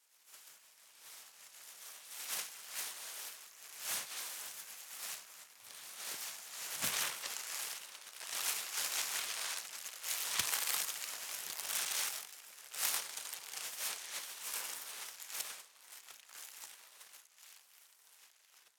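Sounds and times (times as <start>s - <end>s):
plastic bag rustling: 3.0s - 16.6s.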